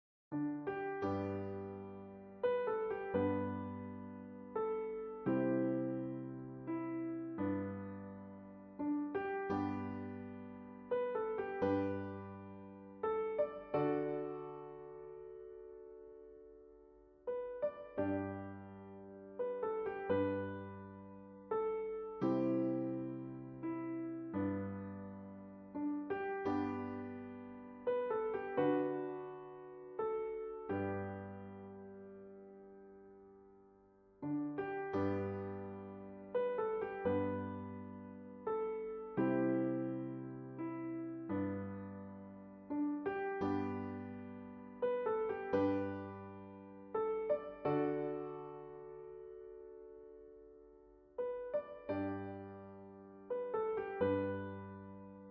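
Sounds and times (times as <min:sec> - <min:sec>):
hymn played on piano: 0:00.3 - 0:55.2.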